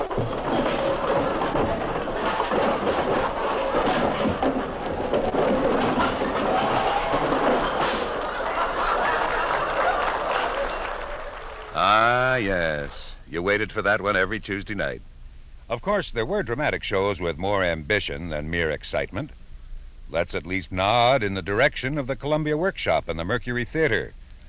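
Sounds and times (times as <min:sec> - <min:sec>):
overstuffed hall closet contents crashing out: 0:00.0 - 0:11.1
laughter: 0:05.8 - 0:12.6
speech: 0:13.4 - 0:15.1, 0:15.7 - 0:19.4, 0:20.1 - 0:24.2.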